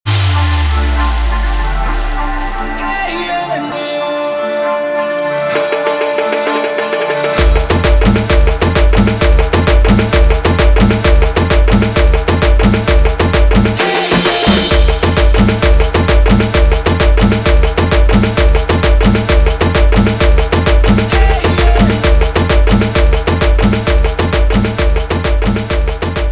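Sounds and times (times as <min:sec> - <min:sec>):
guaracha remix: 0:00.0 - 0:26.2.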